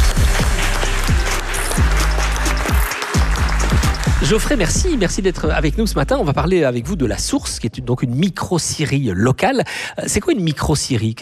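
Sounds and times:
audience applause: 0.0 - 4.8
speech: 4.3 - 11.1.

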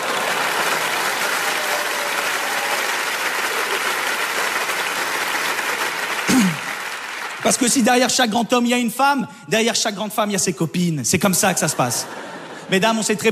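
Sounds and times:
crowd clapping: 0.0 - 8.6
speech: 7.5 - 13.3
laughter: 11.5 - 13.3.

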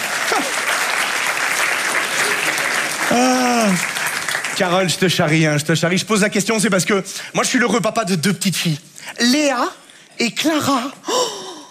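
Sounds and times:
audience applause: 0.0 - 5.4
speech: 3.1 - 3.9, 4.6 - 11.3.

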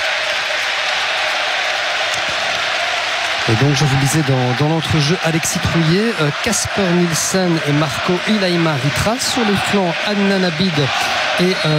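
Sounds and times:
stadium crowd applauding: 0.0 - 11.7
speech: 3.5 - 11.7.

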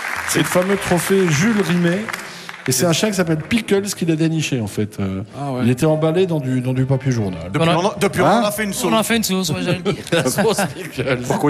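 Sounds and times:
steady clapping from a small group: 0.0 - 4.3
speech: 0.3 - 11.4
laughter: 7.6 - 11.4.

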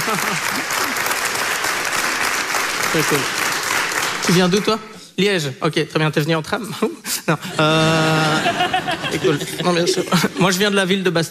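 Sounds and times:
laughter: 0.0 - 1.1, 7.3 - 10.9
audience applause at a Belgian comedy show: 0.0 - 4.8
speech: 0.1 - 1.1, 2.9 - 3.4, 4.3 - 11.2.

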